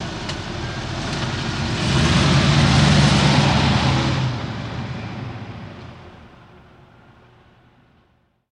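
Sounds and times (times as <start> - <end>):
Cadillac put in gear and driving away: 0.0 - 6.3.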